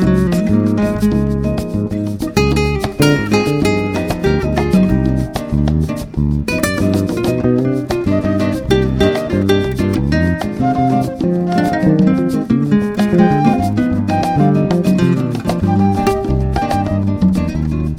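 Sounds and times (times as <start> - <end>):
Latin gypsy group playing: 0.0 - 17.9.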